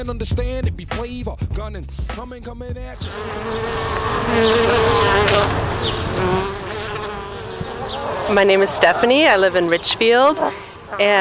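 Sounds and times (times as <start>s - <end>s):
speech: 0.0s - 6.6s, 8.3s - 11.1s
honeybees buzzing: 3.0s - 11.1s.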